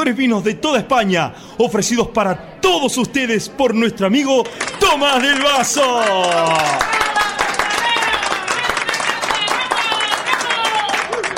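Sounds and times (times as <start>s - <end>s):
speech: 0.0s - 7.0s
audience clapping: 4.4s - 11.3s
crowd calling out and cheering: 4.4s - 11.3s.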